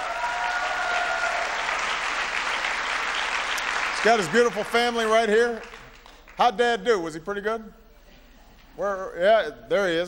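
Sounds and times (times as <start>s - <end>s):
faint cheering: 0.0s - 1.7s
crowd clapping: 0.0s - 6.7s
speech: 4.0s - 5.7s, 6.4s - 7.8s, 8.8s - 10.0s.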